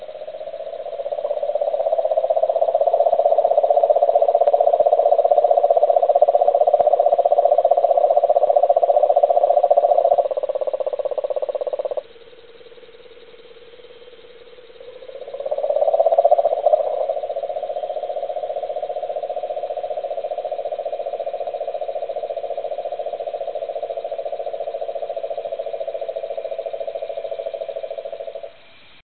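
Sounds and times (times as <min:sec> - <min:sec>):
cane toad Rhinella marina calling: 0:00.0 - 0:29.0.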